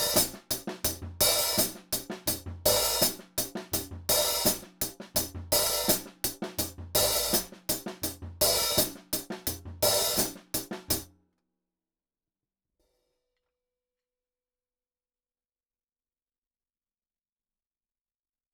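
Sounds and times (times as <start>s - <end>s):
jungle hi-hat: 0.0s - 11.0s.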